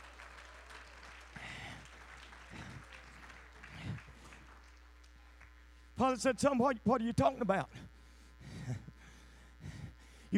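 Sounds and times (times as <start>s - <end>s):
audience applauding: 0.0s - 5.6s
speech: 6.0s - 7.8s.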